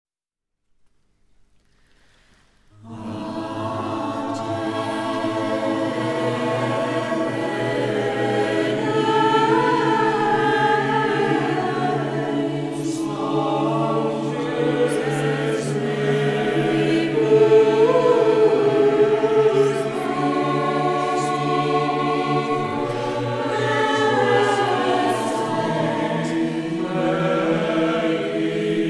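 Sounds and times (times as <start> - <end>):
polyphonic choir: 2.6 - 28.8.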